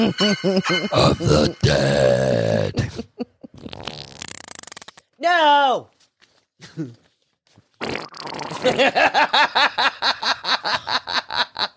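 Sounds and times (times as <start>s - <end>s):
speech: 0.0s - 4.4s, 5.2s - 6.0s, 6.6s - 7.0s, 7.8s - 11.7s
wet fart-like noise: 3.6s - 5.1s, 7.8s - 8.8s.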